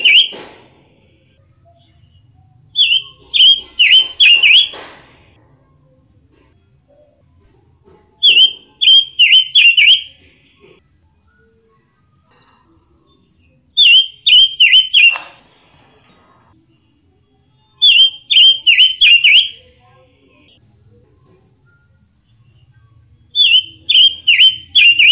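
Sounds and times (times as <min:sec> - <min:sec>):
robin singing whistled notes: 0:00.0 - 0:00.4, 0:02.8 - 0:04.8, 0:08.2 - 0:10.2, 0:13.8 - 0:15.3, 0:17.8 - 0:19.7, 0:23.4 - 0:25.1.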